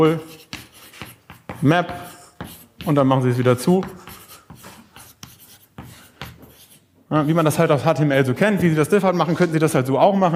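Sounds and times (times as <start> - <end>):
speech: 0.0 - 0.4, 1.6 - 2.1, 2.8 - 4.0, 7.1 - 10.3
writing on a board: 0.0 - 7.6.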